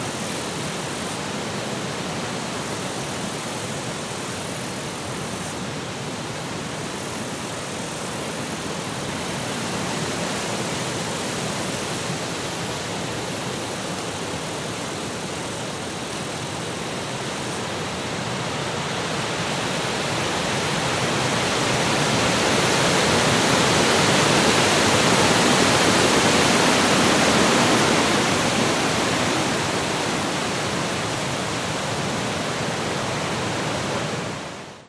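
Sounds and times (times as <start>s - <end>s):
light insects in a summer forest in Australia: 0.0s - 34.7s
summer wind in forest trees in Australia: 0.0s - 34.8s.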